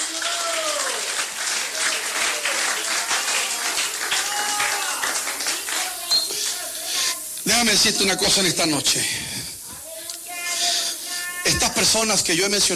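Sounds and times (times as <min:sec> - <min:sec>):
audience applauding: 0:00.0 - 0:07.2
speech: 0:07.6 - 0:09.4, 0:11.8 - 0:12.7.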